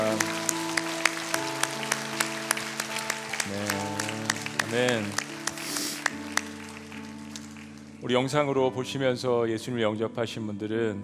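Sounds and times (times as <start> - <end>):
audience applauding: 0.0 - 8.0
speech: 4.7 - 5.2, 8.0 - 11.0.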